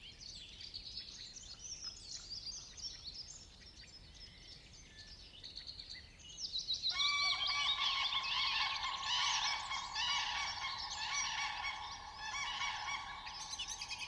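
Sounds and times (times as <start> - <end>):
light wind in a summer forest near a lake: 1.7 - 14.0
swan: 6.9 - 14.0
woodpecker: 6.9 - 14.0.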